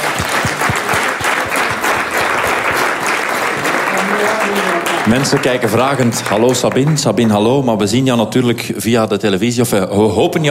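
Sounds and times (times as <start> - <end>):
crowd applauding: 0.0 - 8.1
speech: 5.0 - 10.4.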